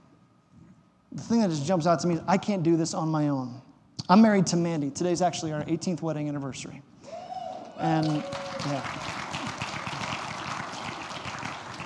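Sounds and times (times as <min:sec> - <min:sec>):
speech: 0:01.2 - 0:07.2, 0:07.8 - 0:09.2
audience applause: 0:07.5 - 0:11.8.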